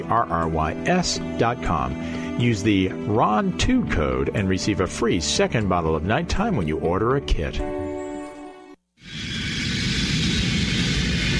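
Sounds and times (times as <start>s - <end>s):
speech: 0.0s - 7.8s
airplane cabin engine and air noise drone: 9.0s - 11.3s.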